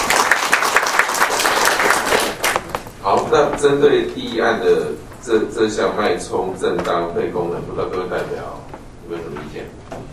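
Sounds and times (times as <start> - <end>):
applause in a committee meeting welcoming a new delegate: 0.0 - 2.9
speech: 3.1 - 9.8.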